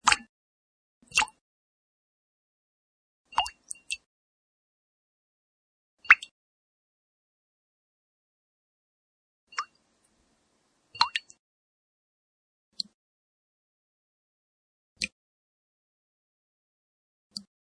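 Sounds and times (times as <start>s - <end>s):
water drops: 0.0s - 0.3s, 1.0s - 1.4s, 3.3s - 4.1s, 6.0s - 6.3s, 11.0s - 11.4s.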